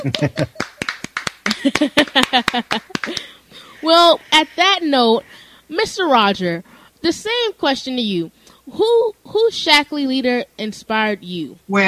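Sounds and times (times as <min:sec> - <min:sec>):
speech: 0:00.0 - 0:00.7, 0:01.6 - 0:11.8
people clapping: 0:00.0 - 0:03.4
laughter: 0:00.0 - 0:04.5
voices talking and cooing: 0:03.6 - 0:05.3.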